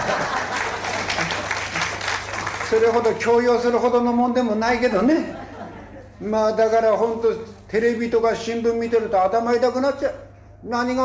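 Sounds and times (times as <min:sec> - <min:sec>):
laughter: 0:00.0 - 0:02.6, 0:05.0 - 0:06.3
audience applause: 0:00.0 - 0:03.5
speech: 0:02.7 - 0:05.4, 0:06.2 - 0:11.0.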